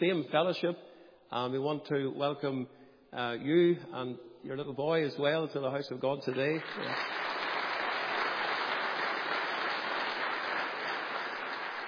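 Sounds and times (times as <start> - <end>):
speech: 0.0 - 7.3
audience clapping: 6.3 - 11.8.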